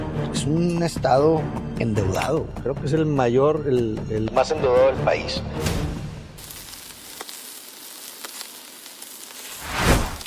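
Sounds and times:
speech: 0.4 - 5.9
meat sizzling on a barbecue grill: 6.1 - 10.2.

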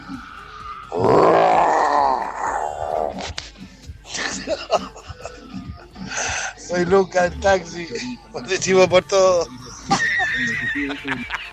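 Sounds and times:
person imitating a lion's roar: 0.9 - 3.4
laughter: 4.1 - 6.3, 9.8 - 11.5
speech: 6.7 - 9.6, 10.4 - 11.2.

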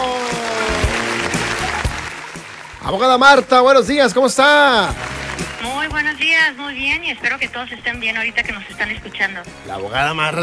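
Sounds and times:
studio audience applause: 0.0 - 6.6
speech: 2.9 - 10.4.

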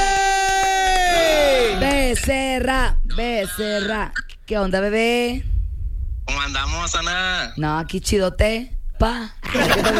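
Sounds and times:
crowd cheering: 0.0 - 2.0
voice whooping: 0.0 - 2.2
speech: 2.2 - 5.5, 6.3 - 9.9
laughter: 9.4 - 9.9.

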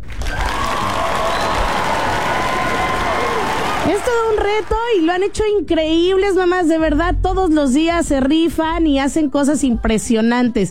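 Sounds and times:
audience applause and cheering: 0.0 - 5.1
speech: 3.9 - 10.6.

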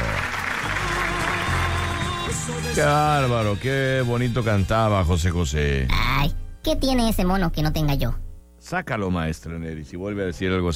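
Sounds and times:
audience applause: 0.0 - 3.6
speech: 2.4 - 10.7.

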